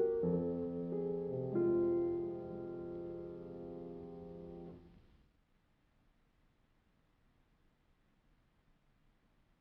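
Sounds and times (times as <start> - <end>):
classical piano mazurka in F minor: 0.0 - 5.1.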